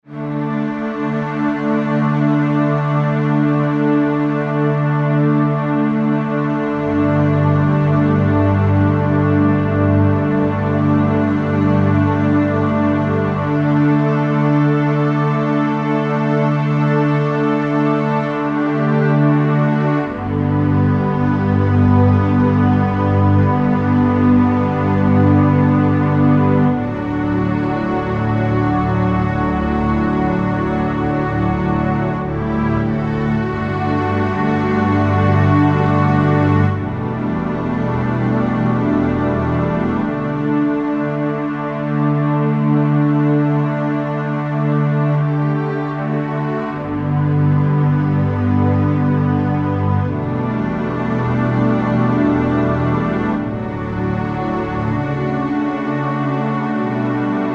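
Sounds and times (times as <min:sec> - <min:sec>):
underscore synth pad: 0:00.1 - 0:57.5.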